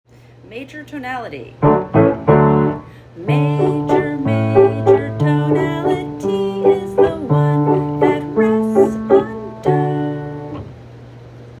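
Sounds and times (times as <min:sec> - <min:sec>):
music in a major key: 0:01.6 - 0:10.7.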